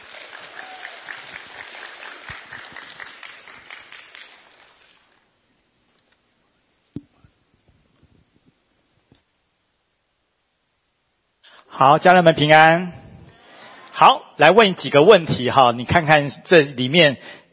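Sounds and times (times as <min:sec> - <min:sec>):
audience applauding: 0:00.0 - 0:05.2
speech: 0:11.8 - 0:13.0, 0:14.0 - 0:17.5.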